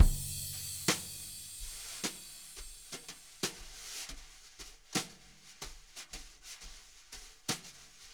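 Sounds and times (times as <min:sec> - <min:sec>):
jazz brush drum loop: 0:00.0 - 0:02.6.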